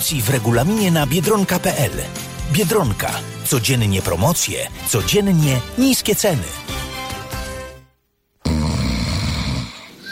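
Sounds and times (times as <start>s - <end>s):
speech: 0.0s - 6.8s
person snoring: 8.4s - 10.1s.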